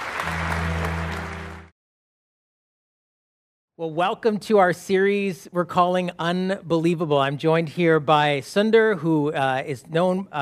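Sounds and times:
audience applause: 0.0s - 1.7s
speech: 3.8s - 10.3s.

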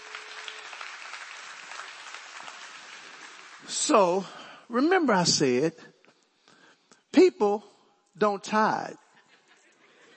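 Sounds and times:
crowd clapping: 0.0s - 4.4s
speech: 3.7s - 5.9s, 7.4s - 9.0s.

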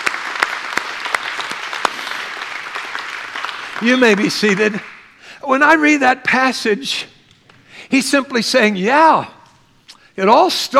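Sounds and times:
people clapping: 0.0s - 5.2s
speech: 3.8s - 4.9s, 5.5s - 7.1s, 7.9s - 9.4s, 10.2s - 10.7s.

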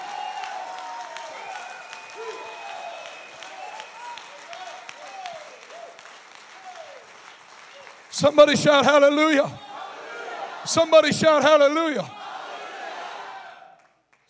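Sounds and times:
audience clapping hands: 0.0s - 9.6s, 13.6s - 14.2s
speech: 8.2s - 9.6s, 10.6s - 12.2s.

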